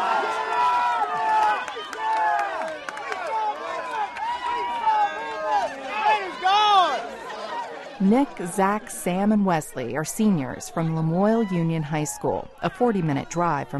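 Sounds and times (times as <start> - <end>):
people clapping: 0.0 - 8.4
local crowd cheering and shouting in excitement: 0.0 - 13.7
speech: 8.0 - 13.7.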